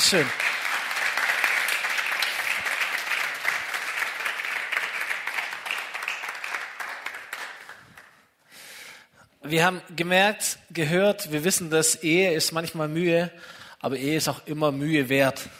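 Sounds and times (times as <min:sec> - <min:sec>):
crowd applause: 0:00.0 - 0:08.2
speech: 0:00.1 - 0:00.5, 0:09.5 - 0:15.5.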